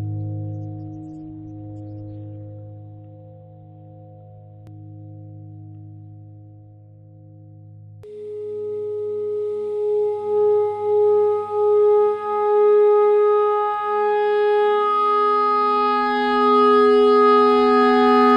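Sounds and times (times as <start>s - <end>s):
clarinet playing pentatonic notes: 8.1s - 18.3s.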